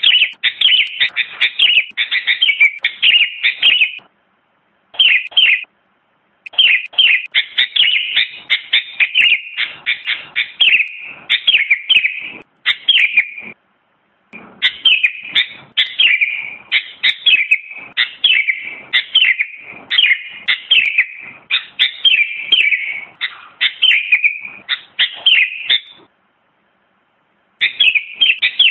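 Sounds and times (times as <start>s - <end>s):
sooty-headed bulbul song with chattering warbled notes: 0.0s - 4.1s, 5.0s - 5.7s, 6.5s - 13.6s, 14.4s - 26.1s, 27.6s - 28.6s.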